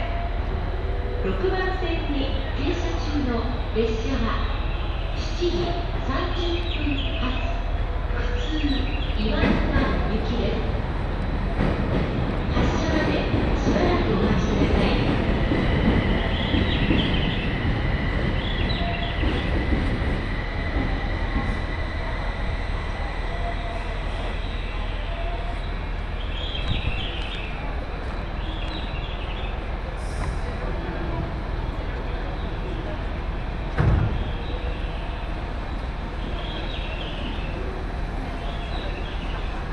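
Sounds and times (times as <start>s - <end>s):
Joban Line train rumbling: 0.0s - 39.7s
speech: 1.2s - 4.6s, 5.4s - 7.6s, 8.2s - 10.8s.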